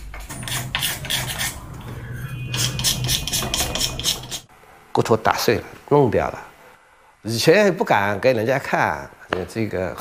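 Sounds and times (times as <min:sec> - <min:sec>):
carving tool scraping across material: 0:00.3 - 0:04.5
speech: 0:05.0 - 0:06.5, 0:07.2 - 0:09.9.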